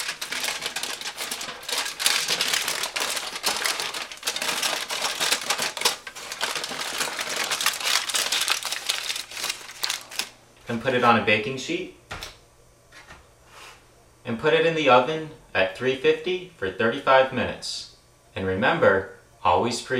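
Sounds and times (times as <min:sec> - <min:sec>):
aluminum foil crinkled into a tent around a beef stick: 0:00.0 - 0:10.4
speech: 0:10.7 - 0:12.0, 0:14.3 - 0:17.8, 0:18.4 - 0:19.9.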